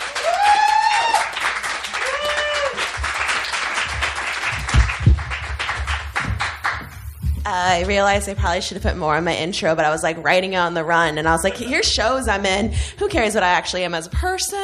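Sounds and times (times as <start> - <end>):
audience applause: 0.0 - 7.2
speech: 7.5 - 14.6.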